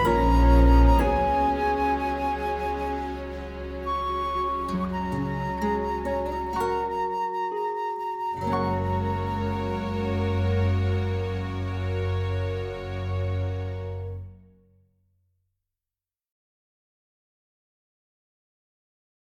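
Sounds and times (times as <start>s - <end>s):
musical accompaniment: 0.0s - 14.5s.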